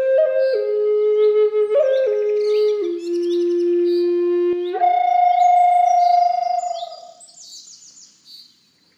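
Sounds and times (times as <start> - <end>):
Lakota flute in the key of F playing: 0.0 - 7.2.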